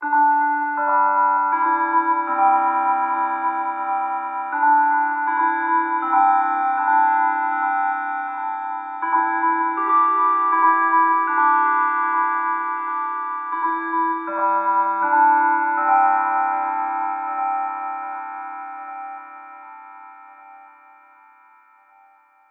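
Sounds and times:
bell: 0.0s - 22.4s.

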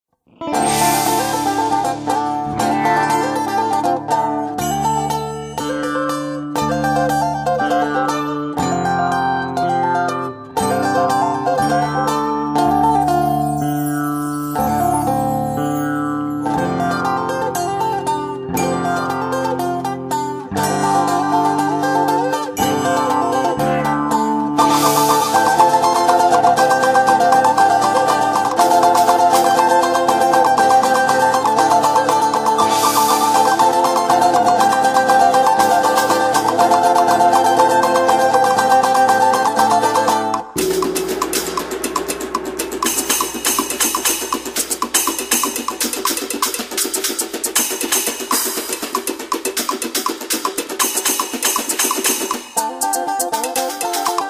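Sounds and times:
ethnic music: 0.3s - 54.2s.

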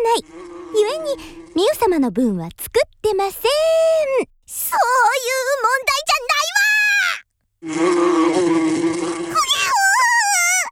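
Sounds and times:
bee swarm buzzing: 0.0s - 2.0s, 7.6s - 9.4s
speech: 0.0s - 9.6s.

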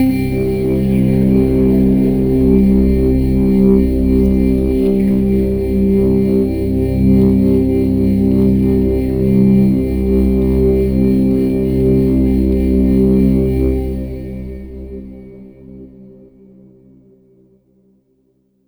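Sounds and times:
downtown overlay drone: 0.0s - 14.8s.

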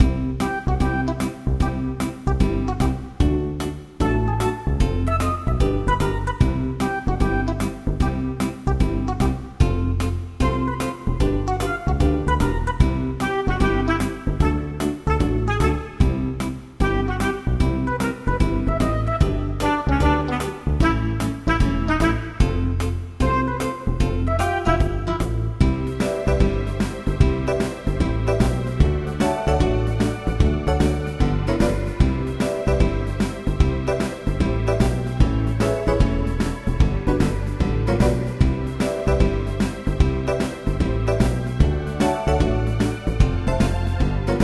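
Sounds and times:
game background music: 0.0s - 44.4s.

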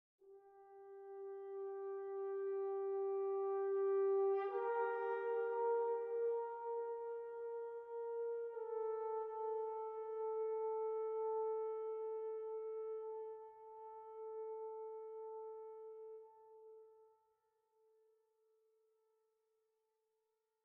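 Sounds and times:
horn playing at 58 bpm in 4-4 time: 0.3s - 16.7s.

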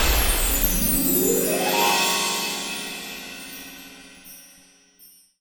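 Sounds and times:
level clear jingle: 0.2s - 4.6s.

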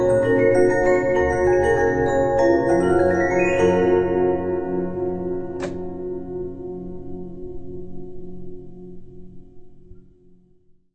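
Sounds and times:
music box: 0.0s - 5.4s.

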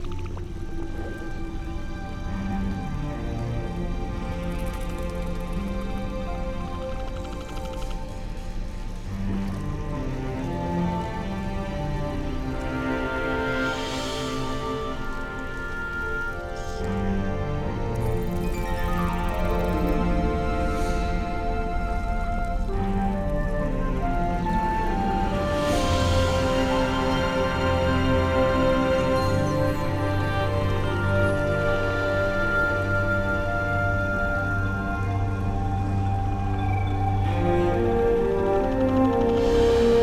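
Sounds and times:
swamp ambience: 0.0s - 40.0s.

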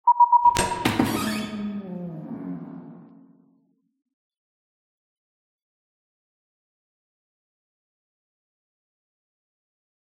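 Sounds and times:
cutscene door: 0.5s - 1.6s.

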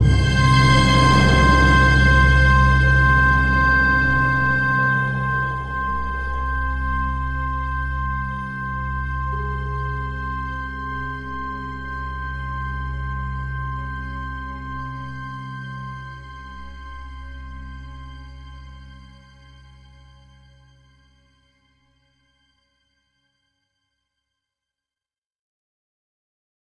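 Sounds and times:
shock sting: 0.0s - 14.6s.

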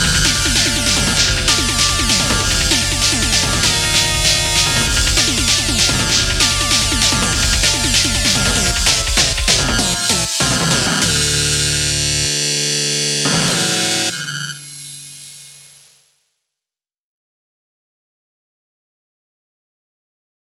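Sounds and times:
boss cavern music: 0.0s - 14.2s.

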